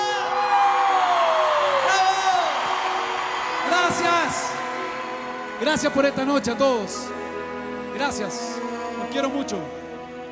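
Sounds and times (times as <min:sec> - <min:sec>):
audience applause and cheering: 0:00.0 - 0:08.0
speech: 0:05.6 - 0:07.3, 0:08.0 - 0:09.8.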